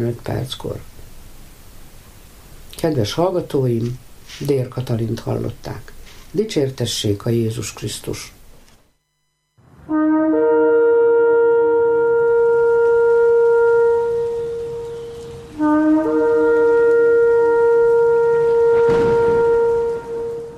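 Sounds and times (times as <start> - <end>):
speech: 0.0 - 0.9, 2.8 - 8.4
horn blasts: 9.4 - 20.5.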